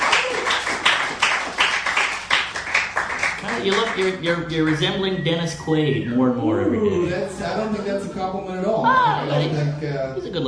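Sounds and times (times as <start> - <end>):
people clapping: 0.0 - 5.1
speech: 3.6 - 10.4.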